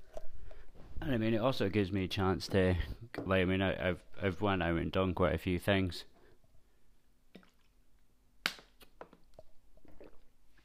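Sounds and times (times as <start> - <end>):
person drinking water: 0.0 - 1.0, 7.3 - 7.8, 8.8 - 10.6
speech: 1.0 - 6.1.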